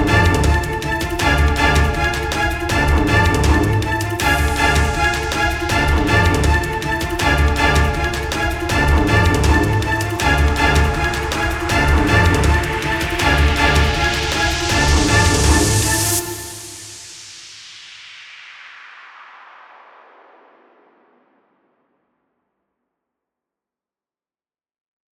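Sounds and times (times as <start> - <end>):
tense horror music: 0.0 - 16.9.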